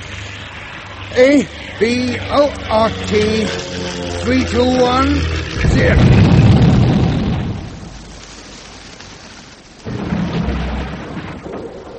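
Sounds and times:
speech: 1.1 - 6.4
plane explosion: 5.5 - 11.9.

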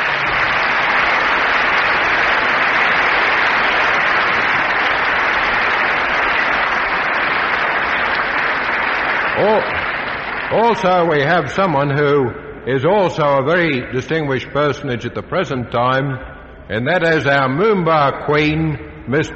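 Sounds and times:
audience applause welcoming guests: 0.0 - 11.9
speech: 10.5 - 19.3.

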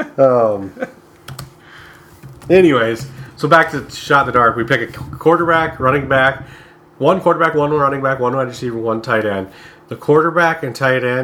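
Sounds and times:
speech: 0.0 - 1.0, 2.5 - 11.2
keyboard typing while jotting down a note: 1.1 - 6.5.

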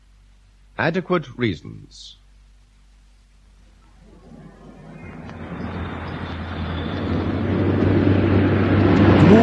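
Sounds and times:
speech: 0.8 - 2.2
low droning hum: 2.2 - 9.4
car speeding past: 4.0 - 9.4.

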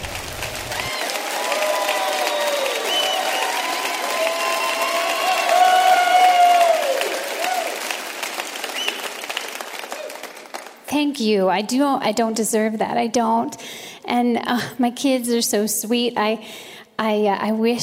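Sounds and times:
crowd clapping and cheering: 0.0 - 10.9
high whoops and shouts: 0.7 - 7.8
speech: 11.1 - 17.8.

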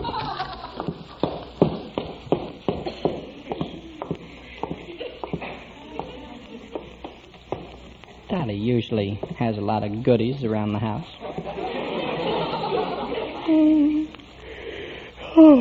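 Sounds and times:
laughter: 0.0 - 1.2, 11.2 - 14.2
footsteps going downstairs in a house: 0.0 - 7.9
speech: 8.4 - 11.4, 15.4 - 15.6.

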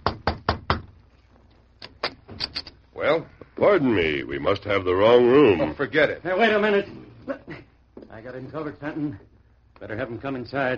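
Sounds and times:
knocking on a room door: 0.0 - 1.0
speech: 3.0 - 10.7.

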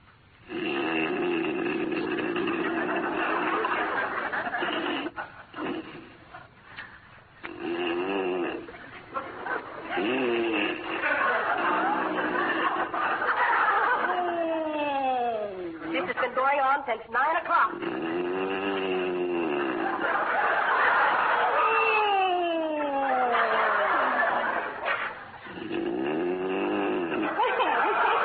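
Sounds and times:
man snoring loudly in bed: 0.5 - 3.6, 4.6 - 6.1, 7.4 - 8.7, 9.9 - 12.9, 17.7 - 20.1, 25.5 - 27.4
laughter: 2.4 - 6.5, 8.7 - 16.4, 19.2 - 25.5, 27.0 - 28.2.

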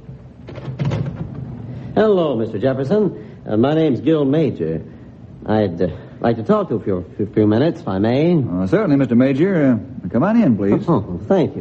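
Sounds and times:
front door being pulled open: 0.4 - 1.7
speech: 2.0 - 11.6.

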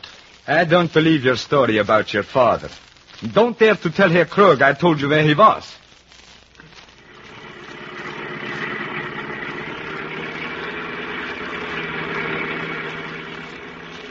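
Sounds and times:
speech: 0.5 - 5.8
car engine running while the car is driven: 7.1 - 14.0.

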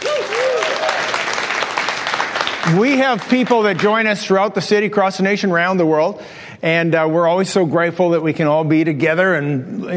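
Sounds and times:
church congregation cheering: 0.0 - 3.9
church congregation clapping: 0.0 - 4.4
speech: 2.7 - 9.9.

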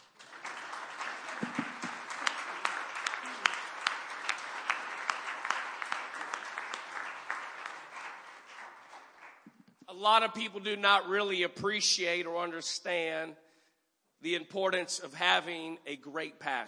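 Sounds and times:
crowd applauding: 0.0 - 9.6
speech: 10.0 - 13.4, 14.2 - 16.6.

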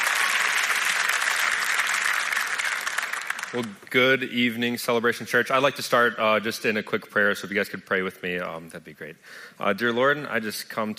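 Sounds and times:
audience applause in a church welcoming a speaker: 0.0 - 3.7
speech: 3.5 - 10.9.

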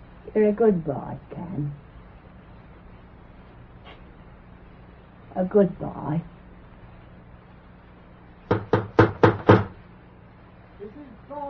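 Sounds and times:
speech: 0.4 - 1.8, 5.4 - 6.4
knocking on a door: 8.5 - 9.8.

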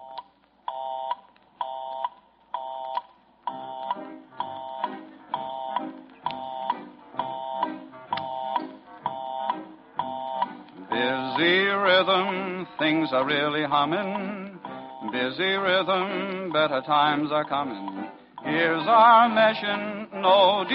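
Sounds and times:
telephone busy signal: 0.0 - 11.6, 14.2 - 15.3
soft rhythmic music backing: 3.4 - 20.7
speech: 11.4 - 14.4, 15.1 - 20.7.

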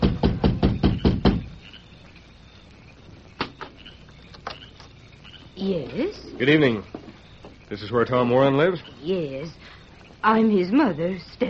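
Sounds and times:
knocking on a door: 0.0 - 1.6
speech: 5.6 - 7.0, 7.7 - 11.4.

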